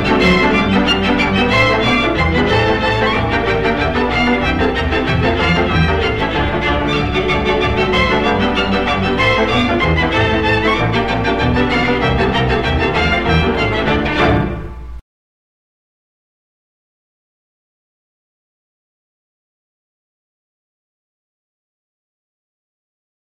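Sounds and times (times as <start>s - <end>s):
czardas music: 0.0s - 15.0s.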